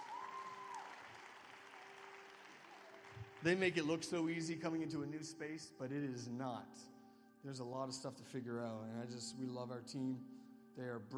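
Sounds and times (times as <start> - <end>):
church audience applause: 0.0 - 4.2
speech: 3.2 - 11.1.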